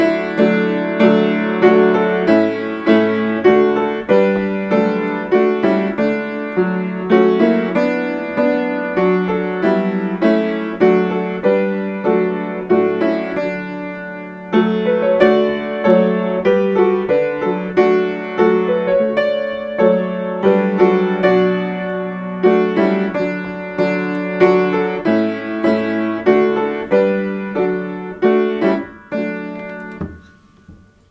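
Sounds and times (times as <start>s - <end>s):
hymn played on piano: 0.0s - 31.0s.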